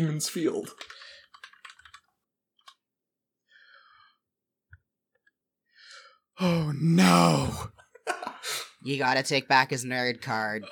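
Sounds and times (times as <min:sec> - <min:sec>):
speech: 0:00.0 - 0:01.0, 0:06.4 - 0:10.7
typing on a computer keyboard: 0:00.7 - 0:02.8.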